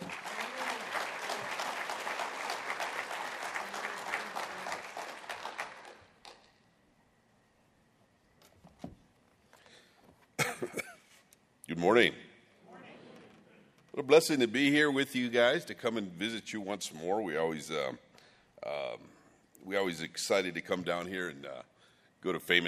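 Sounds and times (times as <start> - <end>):
audience applauding a visiting pastor at a church gathering: 0.0 - 6.6
people coughing and clearing throats: 10.4 - 11.2
speech: 11.8 - 12.2, 14.1 - 22.6.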